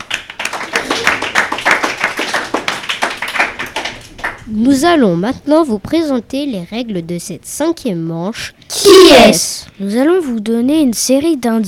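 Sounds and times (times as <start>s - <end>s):
people clapping for the players: 0.0s - 4.7s
speech: 4.5s - 11.6s.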